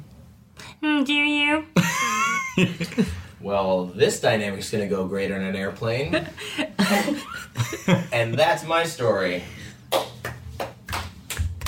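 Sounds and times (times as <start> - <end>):
speech: 0.9 - 9.6
hands clapping: 9.9 - 11.6.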